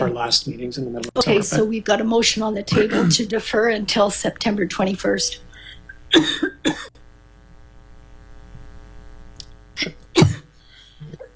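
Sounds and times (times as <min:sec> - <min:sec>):
speech: 0:00.0 - 0:05.5, 0:06.1 - 0:06.8
mayor coughing and choking at a meeting table: 0:02.7 - 0:03.2, 0:06.1 - 0:06.9, 0:09.8 - 0:11.3.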